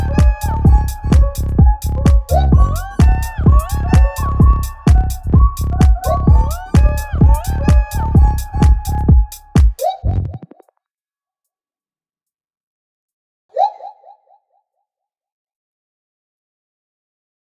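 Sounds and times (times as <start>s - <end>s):
music beat: 0.0s - 10.6s.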